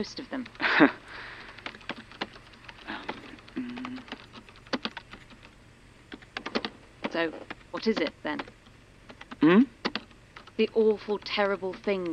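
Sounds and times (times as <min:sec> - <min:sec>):
speech: 0:00.0 - 0:01.3, 0:07.2 - 0:08.6, 0:09.4 - 0:09.7, 0:10.6 - 0:12.1
typing on a computer keyboard: 0:00.0 - 0:12.1.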